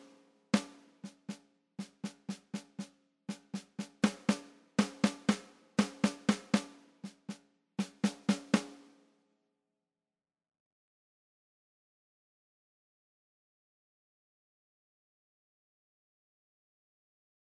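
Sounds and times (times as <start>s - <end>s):
snare drum beat: 0.0s - 8.9s.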